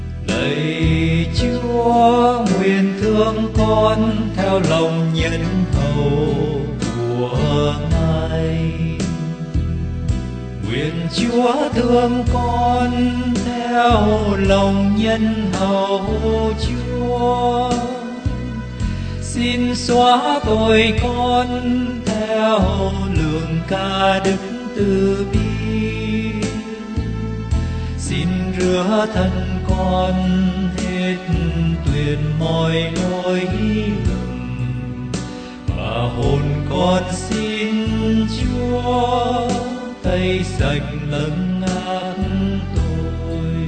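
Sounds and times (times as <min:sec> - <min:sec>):
soprano singing: 0:00.2 - 0:09.7, 0:10.6 - 0:43.6.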